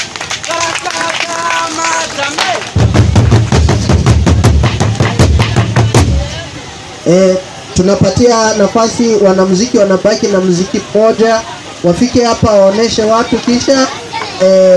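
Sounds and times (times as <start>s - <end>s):
audience clapping rhythmically for guests: 0.0s - 6.1s
speech: 7.1s - 14.7s.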